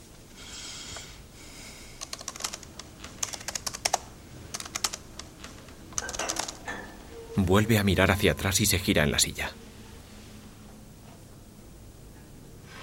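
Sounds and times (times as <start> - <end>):
typing on a computer keyboard: 2.0 - 6.7
speech: 7.4 - 9.6.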